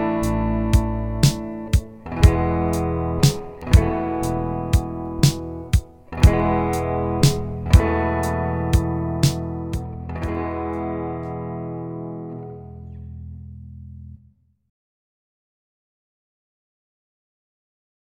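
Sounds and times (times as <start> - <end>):
E D A E sus4 chord sequence: 0.0 - 14.1.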